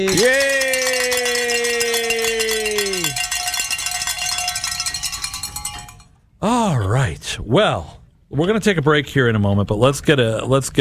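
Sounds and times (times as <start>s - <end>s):
speech: 0.0s - 0.5s, 7.4s - 10.7s
bells ringing to celebrate reaching a goal: 0.0s - 6.2s.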